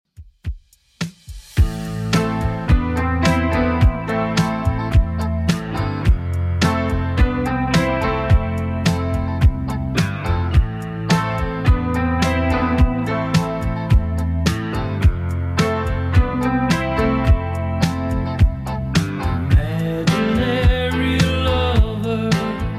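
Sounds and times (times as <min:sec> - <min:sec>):
70s beat: 0:00.1 - 0:22.2.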